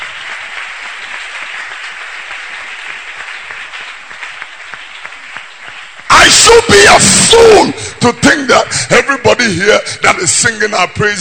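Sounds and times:
audience clapping hands: 0.0s - 11.1s
speech: 6.4s - 11.1s.

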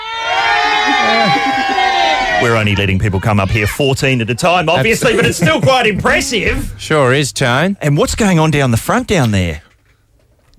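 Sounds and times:
crowd of protesters shouting outside studio door: 0.0s - 3.9s
laughter: 0.6s - 6.6s
speech: 2.4s - 9.6s.

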